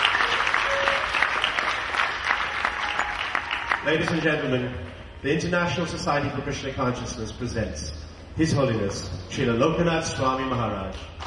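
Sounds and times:
audience round of applause: 0.0s - 4.2s
speech: 3.8s - 11.2s.

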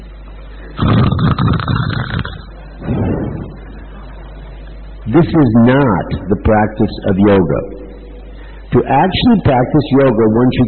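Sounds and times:
person snoring: 0.8s - 2.5s
speech: 5.2s - 7.9s, 8.7s - 10.6s.

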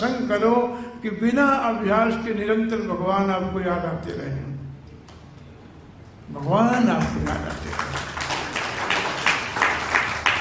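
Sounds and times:
speech: 0.0s - 4.5s, 6.3s - 8.0s
hesitant audience clapping at a Bhagavat discourse gathering: 7.0s - 10.3s.

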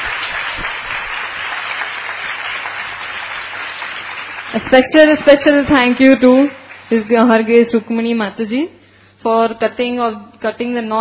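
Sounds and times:
audience applause: 0.0s - 5.6s
speech: 4.5s - 11.0s.

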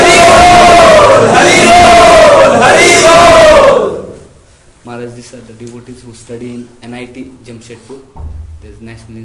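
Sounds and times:
devotees chanting loudly together in welcome: 0.0s - 4.3s
speech: 7.6s - 9.2s.

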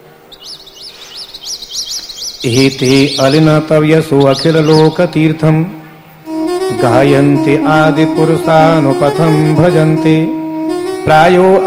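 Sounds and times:
birds chirping: 0.0s - 6.2s
speech: 2.4s - 5.8s, 6.7s - 10.4s, 11.1s - 11.6s.

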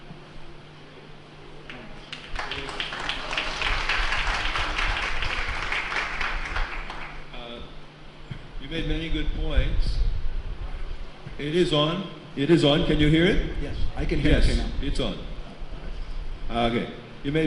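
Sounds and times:
audience applauding: 1.7s - 7.3s
speech: 8.7s - 10.1s, 11.4s - 15.3s, 16.5s - 17.4s.

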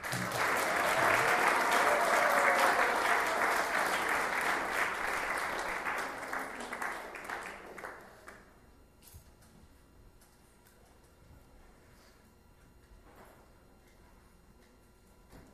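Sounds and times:
applause welcoming an honoree: 0.0s - 8.6s.

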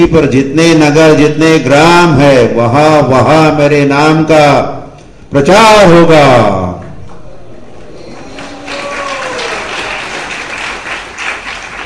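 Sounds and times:
speech: 0.0s - 6.7s
audience at a Hare Krishna religious discourse applauding: 7.8s - 11.8s.

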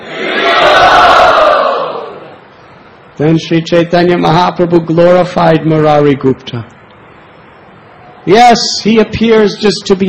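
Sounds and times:
devotees cheering with joy: 0.0s - 2.4s
speech: 3.2s - 6.8s, 8.2s - 10.0s.

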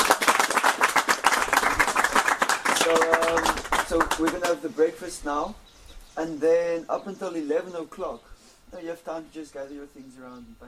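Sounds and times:
audience applause: 0.0s - 4.6s
speech: 3.9s - 10.6s.

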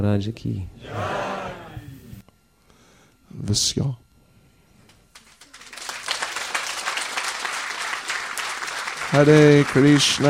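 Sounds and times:
speech: 0.0s - 1.2s, 3.3s - 4.0s, 9.1s - 10.2s
audience applause for actors: 5.2s - 10.2s.

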